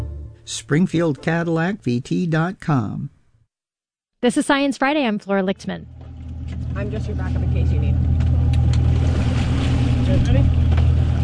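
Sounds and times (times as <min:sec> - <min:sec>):
speech: 0:00.5 - 0:03.2, 0:04.2 - 0:08.1, 0:10.1 - 0:10.6
boat engine droning on open water: 0:05.6 - 0:11.2
wind: 0:05.9 - 0:11.2
water splashing: 0:06.7 - 0:11.2.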